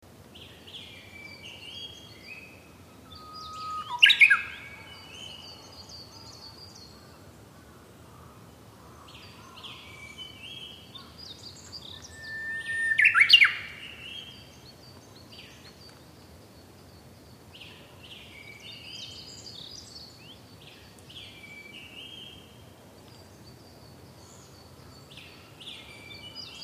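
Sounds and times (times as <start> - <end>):
Japanese bush warbler singing: 0.4 - 7.0, 9.2 - 26.6.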